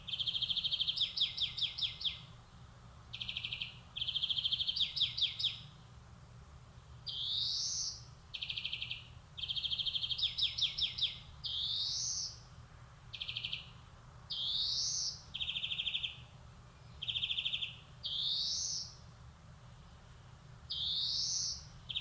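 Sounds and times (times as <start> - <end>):
European greenfinch Chloris chloris song of buzzy trills and twittering: 0.0 - 2.3, 3.1 - 5.7, 7.1 - 12.5, 13.1 - 19.0, 20.7 - 21.9.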